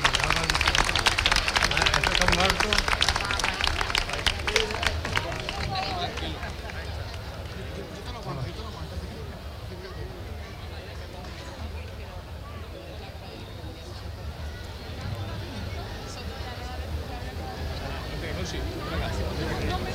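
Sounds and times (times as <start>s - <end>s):
audience applause: 0.0s - 8.2s
faint crowd murmur: 0.0s - 19.9s.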